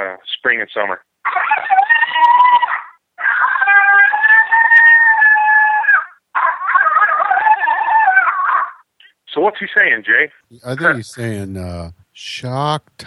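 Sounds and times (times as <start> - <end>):
speech: 0.2 - 1.4, 9.4 - 13.0
male coyote non-aggressive howl from a game caller: 1.2 - 8.9.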